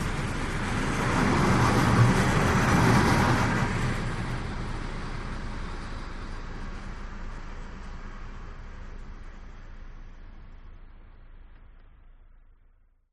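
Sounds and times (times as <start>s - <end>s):
train passing by in Germany: 0.0s - 10.2s.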